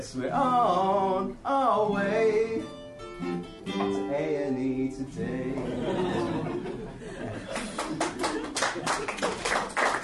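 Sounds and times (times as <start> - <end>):
speech: 0.0 - 6.5
laughter: 5.6 - 9.6
hand clapping: 7.5 - 10.0.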